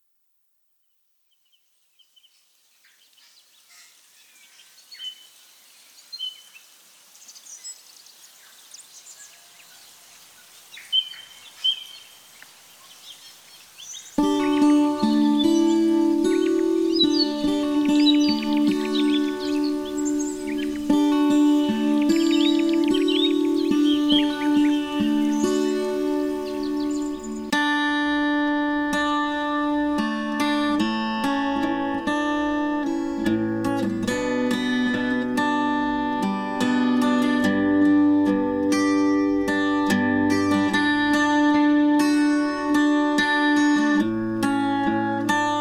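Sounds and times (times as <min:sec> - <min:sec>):
acoustic guitar: 0:14.2 - 0:45.5.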